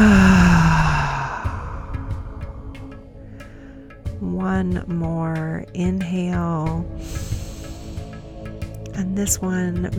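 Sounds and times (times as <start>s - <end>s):
loud sighing exhale in a breathing exercise: 0.0s - 3.8s
speech: 4.6s - 7.4s, 9.1s - 9.9s.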